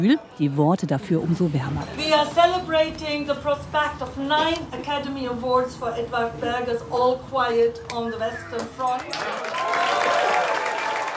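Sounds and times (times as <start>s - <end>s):
speech: 0.0s - 10.2s
applause at a reception: 8.8s - 11.1s.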